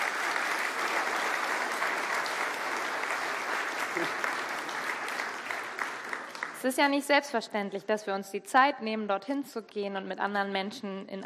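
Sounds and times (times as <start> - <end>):
big round of applause: 0.0 - 6.8
speech: 4.0 - 4.3, 6.6 - 11.2.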